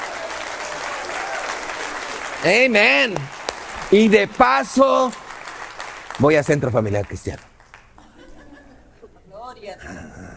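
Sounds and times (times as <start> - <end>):
loud applause from audience: 0.0 - 7.2
speech: 2.4 - 5.2, 6.2 - 7.5
laughter: 8.0 - 9.3.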